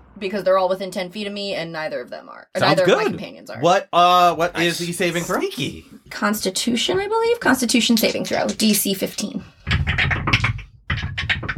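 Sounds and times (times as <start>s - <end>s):
speech: 0.2s - 10.5s
dice rolling down a dice tower: 8.0s - 8.9s, 9.7s - 11.5s.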